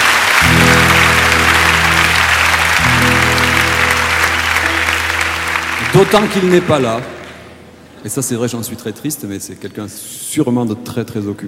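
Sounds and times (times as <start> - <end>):
audience applauding loudly: 0.0 - 7.6
speech: 6.0 - 7.1, 8.0 - 11.4.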